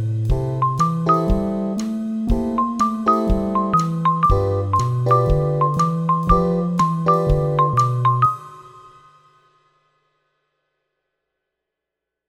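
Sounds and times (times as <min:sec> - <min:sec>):
MIDI blues music: 0:00.3 - 0:08.3.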